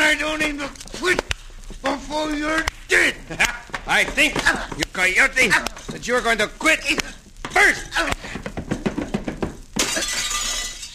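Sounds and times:
speech: 0.2 - 1.3, 2.1 - 8.2
man crashing through a glass window: 9.8 - 10.9.

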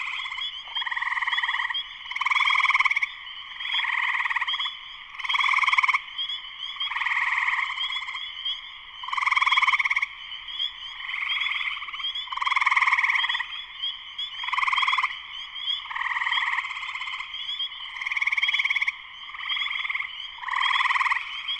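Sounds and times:
spring peepers chorusing: 0.0 - 21.5.

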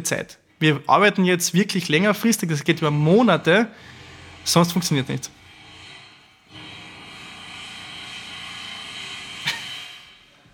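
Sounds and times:
speech: 0.0 - 5.4
pneumatic jackhammer drilling into a steel beam: 5.3 - 10.4.

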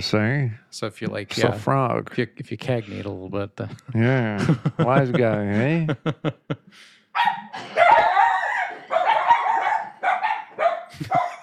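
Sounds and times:
speech: 0.0 - 8.2
laughter: 3.6 - 6.7, 10.9 - 11.4
dog barking at doorbell: 7.2 - 11.4.

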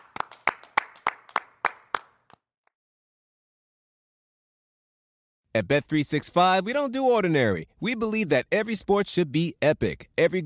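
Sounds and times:
hand claps: 0.0 - 2.5
speech: 5.5 - 10.4.

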